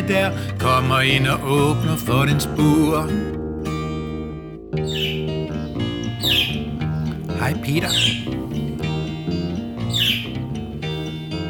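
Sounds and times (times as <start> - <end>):
speech: 0.1 - 3.4, 7.4 - 8.5
steady tonal background: 2.9 - 11.4
blue budgerigar whistling and chirping: 4.8 - 11.4.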